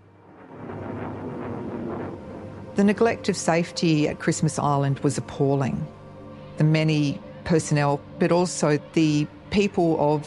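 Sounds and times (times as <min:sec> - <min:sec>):
plane taking off: 0:00.0 - 0:06.3
speech: 0:02.8 - 0:06.0, 0:06.6 - 0:10.2.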